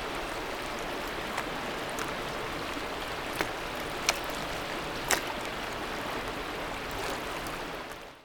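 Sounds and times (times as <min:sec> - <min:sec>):
small waves lapping: 0:00.0 - 0:08.2.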